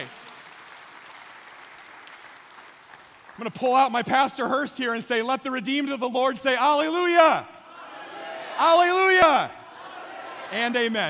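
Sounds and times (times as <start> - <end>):
audience applauding: 0.0 - 3.9
speech: 3.4 - 7.6, 8.6 - 9.6, 10.5 - 11.0.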